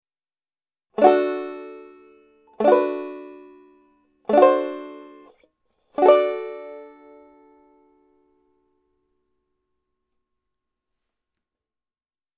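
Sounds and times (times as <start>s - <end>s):
banjo chord melody: 1.0s - 5.4s, 6.0s - 8.0s.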